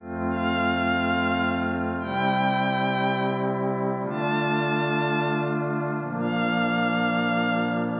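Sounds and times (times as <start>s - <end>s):
happy warm ensemble music: 0.0s - 7.9s.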